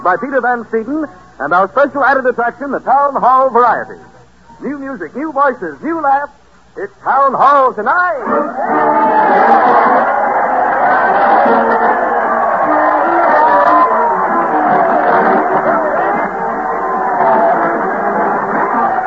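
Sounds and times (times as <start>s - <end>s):
speech: 0.0s - 10.2s
crowd cheering: 7.5s - 19.0s.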